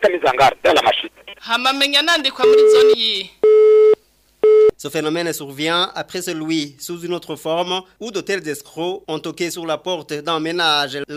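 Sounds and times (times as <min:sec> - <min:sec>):
speech: 0:00.0 - 0:03.4, 0:04.8 - 0:11.1
telephone busy tone: 0:02.4 - 0:04.7.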